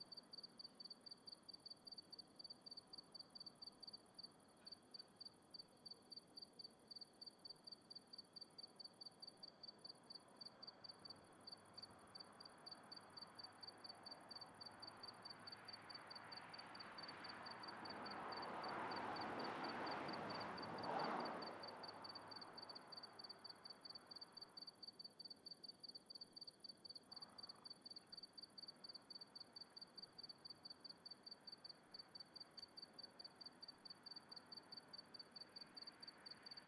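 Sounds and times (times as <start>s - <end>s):
crickets chirping on a country night: 0.0s - 36.6s
car passing: 15.0s - 23.6s.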